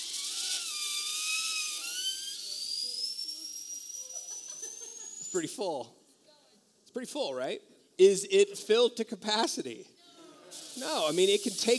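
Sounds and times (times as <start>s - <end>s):
air compressor hissing while inflating a balloon: 0.0s - 5.4s, 10.5s - 11.7s
speech: 5.3s - 6.0s, 6.9s - 11.7s.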